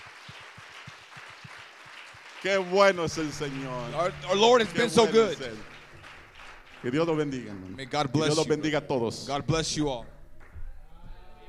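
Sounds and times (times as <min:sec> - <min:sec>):
audience applause: 0:00.0 - 0:08.8
speech: 0:02.4 - 0:05.7, 0:06.8 - 0:10.1.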